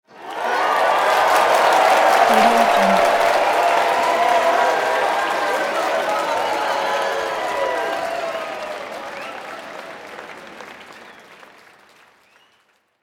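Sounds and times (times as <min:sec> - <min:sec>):
crowd cheering: 0:00.1 - 0:11.4.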